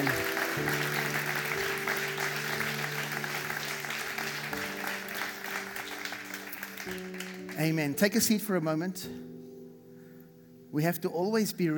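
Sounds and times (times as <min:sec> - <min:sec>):
church audience applauding: 0:00.0 - 0:08.0
speech: 0:07.6 - 0:09.3, 0:10.8 - 0:11.7.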